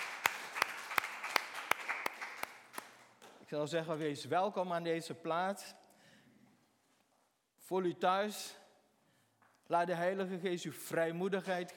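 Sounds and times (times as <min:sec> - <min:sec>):
audience applause welcoming newcomers: 0:00.0 - 0:03.1
speech: 0:03.5 - 0:05.8, 0:07.7 - 0:08.6, 0:09.7 - 0:11.7.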